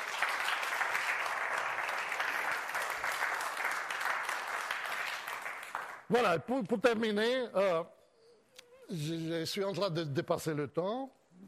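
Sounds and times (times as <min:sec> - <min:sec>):
audience applauding: 0:00.0 - 0:06.3
speech: 0:06.1 - 0:08.0, 0:08.9 - 0:11.4.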